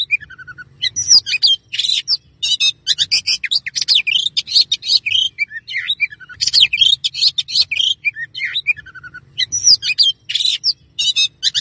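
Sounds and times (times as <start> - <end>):
Oriental magpie-robin singing: 0.0 - 11.5.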